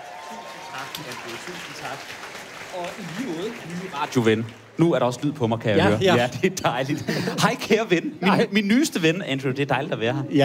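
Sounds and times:
audience applause: 0.0s - 5.4s
speech: 0.8s - 10.4s.

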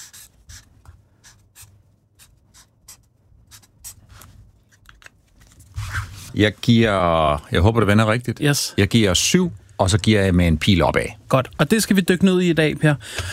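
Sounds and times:
pen scratching on notepad writing a grade: 0.0s - 4.2s
speech: 6.4s - 13.3s.

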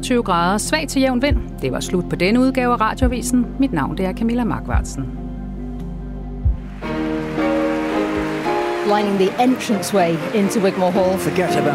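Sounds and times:
speech: 0.0s - 5.2s, 8.9s - 11.7s
rapturous applause in Wigmore Hall: 6.6s - 11.7s.

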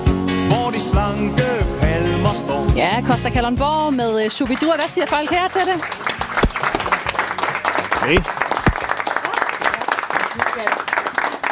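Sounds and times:
speech: 0.8s - 6.5s, 8.0s - 8.4s
audience applause: 4.5s - 11.4s.

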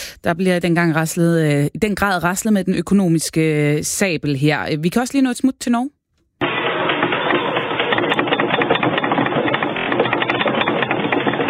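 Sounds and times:
speech: 0.2s - 6.0s
recorded rumble of an earthquake: 6.4s - 11.4s.

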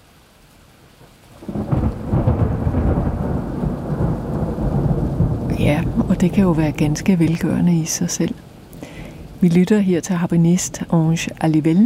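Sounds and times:
recorded thunderclap: 1.4s - 7.6s
speech: 5.7s - 8.5s, 9.4s - 11.8s.

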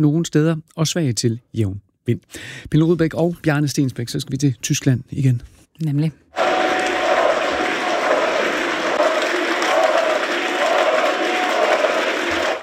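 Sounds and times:
speech: 0.0s - 6.3s
large crowd chanting a name at a rally: 6.4s - 12.6s.

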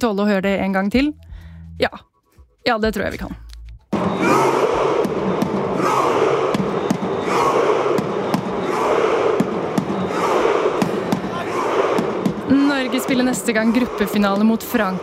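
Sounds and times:
speech: 0.0s - 3.4s, 13.0s - 15.0s
stadium crowd cheering and chanting: 4.0s - 15.0s
drum beat: 6.5s - 15.0s.

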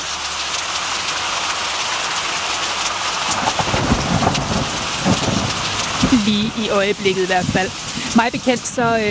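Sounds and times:
heavy rain: 0.0s - 9.0s
thunder rumbling: 3.2s - 9.0s
speech: 6.3s - 9.0s.

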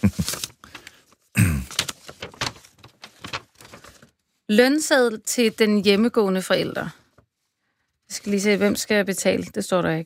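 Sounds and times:
speech: 0.0s - 0.4s, 4.5s - 7.0s, 8.2s - 10.0s
light-blue paper envelope being opened: 0.0s - 1.0s, 1.6s - 4.1s.

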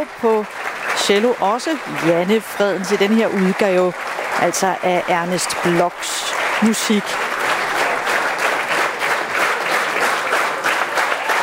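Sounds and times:
speech: 0.0s - 7.3s
roaring applause from concert audience at the Odsherred Kammermusikfestival: 0.0s - 11.4s.

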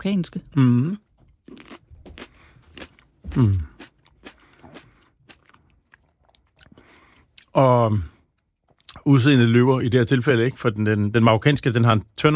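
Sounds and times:
speech: 0.0s - 1.8s, 3.4s - 3.7s, 7.6s - 8.1s, 9.0s - 12.3s
person chewing something crunchy: 1.2s - 7.6s
low voiced murmur: 3.3s - 3.8s.

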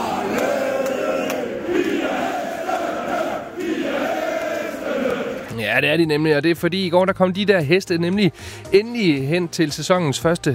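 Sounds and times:
football fans singing along loudly: 0.0s - 5.5s
speech: 5.7s - 10.5s.

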